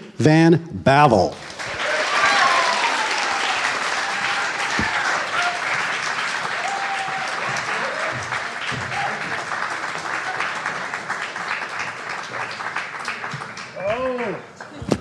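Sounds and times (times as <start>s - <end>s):
speech: 0.2s - 1.5s
audience applause: 1.3s - 14.9s
cheers and whistles: 1.8s - 5.8s, 6.5s - 8.3s.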